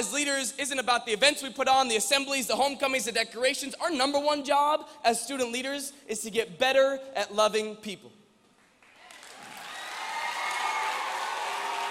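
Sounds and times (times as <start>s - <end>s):
speech: 0.0s - 8.2s
audience applause: 8.8s - 11.8s.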